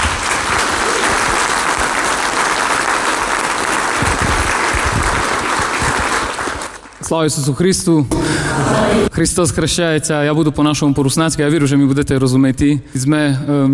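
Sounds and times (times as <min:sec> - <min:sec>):
audience applause: 0:00.0 - 0:07.0
speech: 0:07.1 - 0:13.7.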